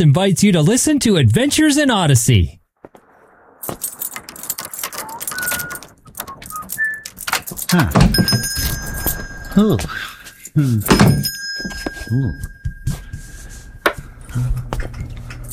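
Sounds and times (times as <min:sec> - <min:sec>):
speech: 0:00.0 - 0:02.6, 0:03.6 - 0:04.1, 0:07.7 - 0:08.7, 0:09.6 - 0:12.5, 0:14.4 - 0:14.6
door noise: 0:02.9 - 0:09.5
small shop-door bell ringing: 0:04.6 - 0:05.9, 0:07.1 - 0:14.2.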